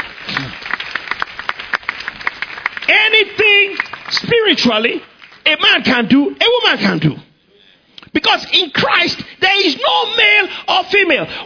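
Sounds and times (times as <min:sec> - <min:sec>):
audience clapping: 0:00.0 - 0:05.5
speech: 0:02.9 - 0:07.3, 0:08.1 - 0:11.4.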